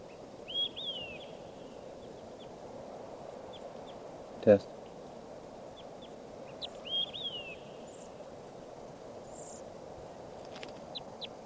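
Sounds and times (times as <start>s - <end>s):
bird chirps: 0.0s - 2.6s, 3.5s - 4.0s, 4.9s - 8.3s, 9.2s - 9.6s, 10.5s - 11.4s
bird singing: 0.0s - 2.7s, 3.4s - 8.6s, 9.2s - 9.7s, 10.5s - 11.4s
hiss: 0.0s - 11.4s
speech: 4.4s - 4.8s.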